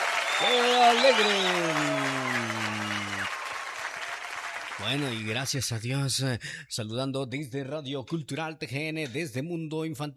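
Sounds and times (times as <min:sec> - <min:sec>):
faint applause on a children's radio program: 0:00.0 - 0:05.4
speech: 0:00.4 - 0:01.9, 0:04.8 - 0:10.1.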